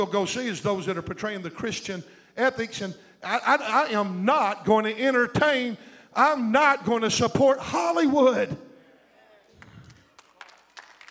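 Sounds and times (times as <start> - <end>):
speech: 0.0 - 8.6
faint audience applause: 9.5 - 11.0.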